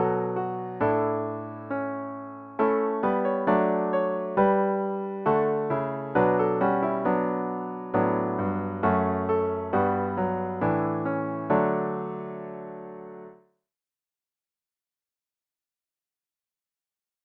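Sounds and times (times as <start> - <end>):
solo piano: 0.0 - 13.4.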